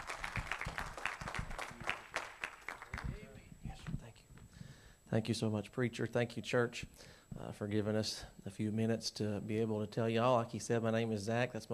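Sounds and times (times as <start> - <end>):
audience applauding: 0.0 - 3.2
speech: 5.1 - 11.7.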